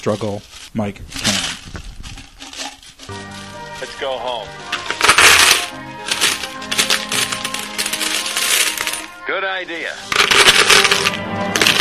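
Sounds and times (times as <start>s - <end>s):
speech: 0.0s - 1.8s, 4.0s - 4.9s, 9.3s - 11.8s
coins dropping and clinking: 4.6s - 9.2s, 10.0s - 11.8s.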